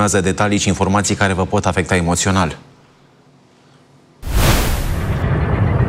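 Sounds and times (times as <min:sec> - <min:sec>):
speech: 0:00.0 - 0:02.7
missile and drone explosions over a city: 0:04.2 - 0:05.7.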